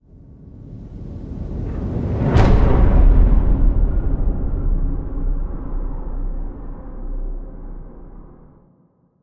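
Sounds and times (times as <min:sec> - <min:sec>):
low hit: 0:01.5 - 0:08.6.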